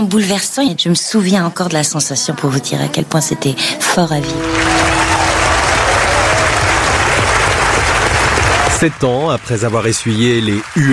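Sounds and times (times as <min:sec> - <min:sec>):
speech: 0:00.0 - 0:05.2, 0:08.8 - 0:10.9
audience ovation applause: 0:04.2 - 0:10.9.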